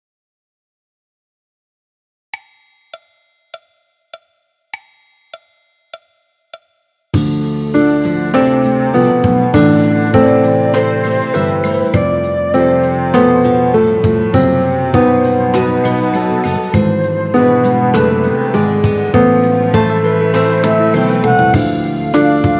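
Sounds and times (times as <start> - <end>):
piano: 7.2 - 22.5
orchestra playing: 7.4 - 22.5.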